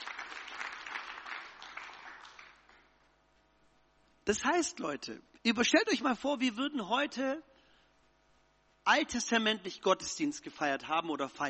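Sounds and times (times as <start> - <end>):
audience applause: 0.0 - 2.9
speech: 4.3 - 7.5, 8.8 - 11.4.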